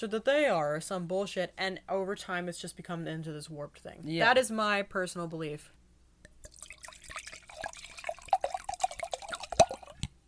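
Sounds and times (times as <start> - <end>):
speech: 0.0 - 5.8
wine pouring into a glass: 6.4 - 10.1.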